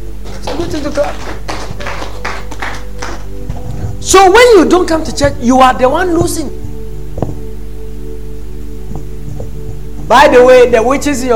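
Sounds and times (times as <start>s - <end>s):
audience clapping: 0.2s - 3.6s
speech: 0.6s - 1.5s, 4.0s - 6.6s, 10.1s - 11.3s.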